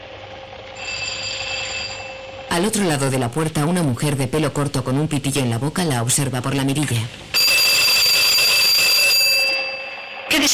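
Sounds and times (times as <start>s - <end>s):
electric doorbell ringing: 0.7s - 2.4s, 7.4s - 10.3s
speech: 2.6s - 7.3s, 10.4s - 10.5s.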